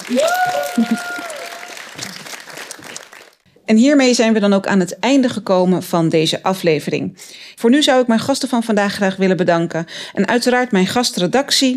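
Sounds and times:
audience applause: 0.0 - 3.4
speech: 0.1 - 1.0, 3.7 - 11.7.

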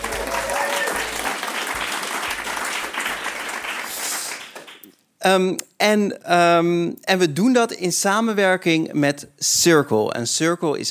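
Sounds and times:
live audience applauding: 0.0 - 4.9
speech: 5.2 - 10.8.

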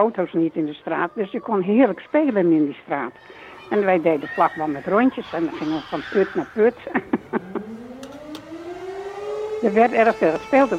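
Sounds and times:
speech: 0.0 - 7.8, 9.6 - 10.7
laughter: 0.9 - 8.2
air raid siren winding up: 3.2 - 10.7.

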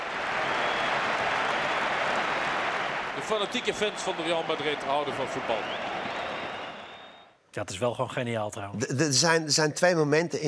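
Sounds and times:
audience applause: 0.0 - 7.2
speech: 3.2 - 6.0, 7.6 - 10.4.

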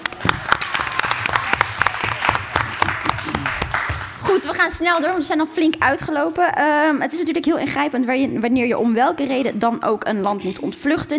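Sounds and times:
audience applause: 0.0 - 4.4
speech: 4.5 - 11.1.

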